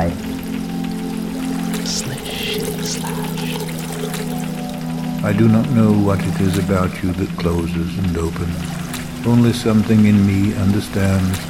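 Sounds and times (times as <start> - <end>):
rain pouring: 0.0 - 11.4
speech: 2.9 - 3.6, 5.2 - 11.4.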